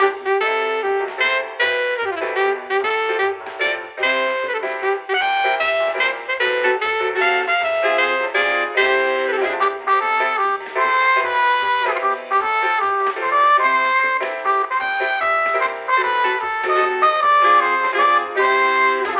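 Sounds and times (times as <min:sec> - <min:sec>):
birthday music: 0:00.0 - 0:19.1.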